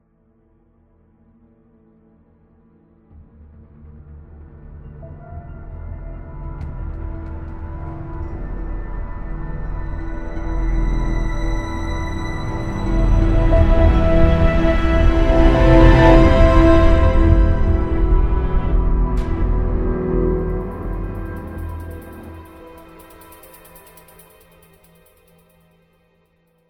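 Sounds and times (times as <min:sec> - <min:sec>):
tense room tone: 0:05.4 - 0:24.9.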